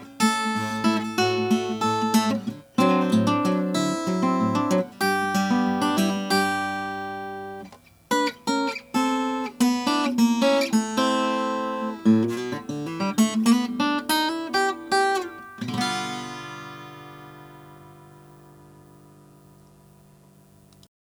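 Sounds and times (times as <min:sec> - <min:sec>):
1946 Gibson LG-2 sunburst guitar: 0:00.0 - 0:20.8.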